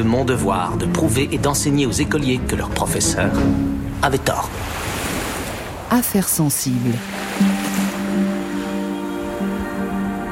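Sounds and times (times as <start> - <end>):
speech: 0.0 - 4.8, 5.9 - 7.5
ocean waves sloshing around a sailing raft: 2.5 - 10.3.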